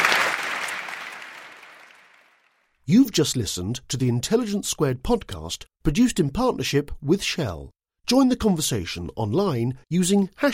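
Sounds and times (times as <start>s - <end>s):
audience applause: 0.0s - 2.5s
speech: 2.9s - 10.5s.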